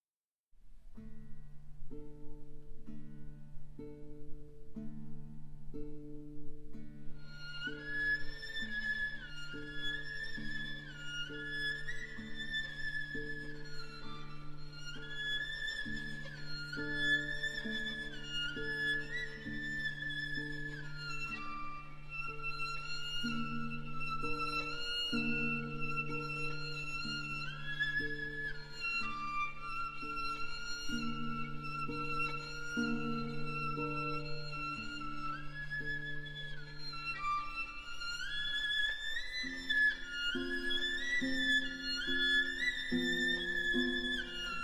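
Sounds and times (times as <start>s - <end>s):
violin playing a Romanian folk dance: 0.8s - 44.6s
guitar playing a Romanian folk dance: 0.9s - 44.6s.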